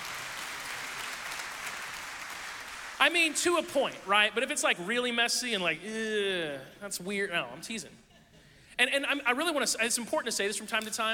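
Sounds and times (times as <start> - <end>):
audience applause: 0.0 - 3.2
speech: 3.0 - 8.0, 8.8 - 11.1.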